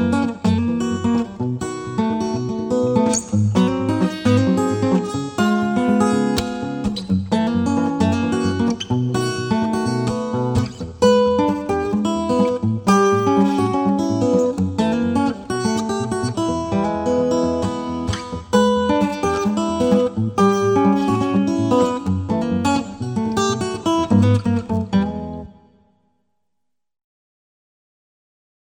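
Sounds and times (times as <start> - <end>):
steel string guitar: 0.0 - 25.8.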